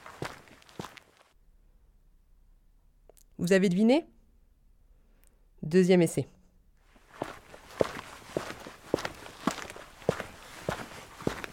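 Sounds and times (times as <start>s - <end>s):
footsteps on concrete: 0.0s - 1.2s, 6.8s - 11.5s
speech: 3.4s - 4.1s, 5.7s - 6.4s.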